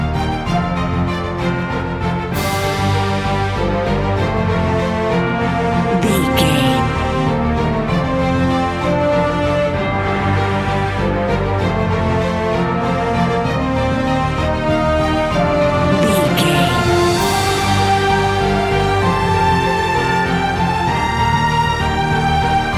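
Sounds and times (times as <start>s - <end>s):
epic cinematic music without drums: 0.0s - 22.7s.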